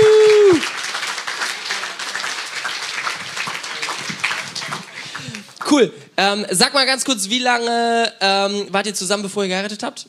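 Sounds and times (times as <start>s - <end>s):
audience applause: 0.0s - 5.8s
speech: 5.8s - 10.0s.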